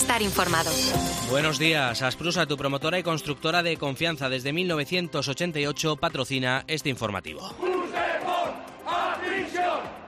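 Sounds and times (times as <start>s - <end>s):
speech: 0.2s - 7.8s
protesters chanting against the amnesty outside the Casa del Pueblo in Gijón: 7.5s - 10.0s.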